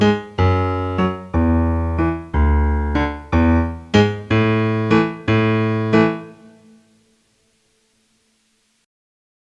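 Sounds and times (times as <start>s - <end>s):
chromatic bass line played left hand only: 0.4s - 6.3s.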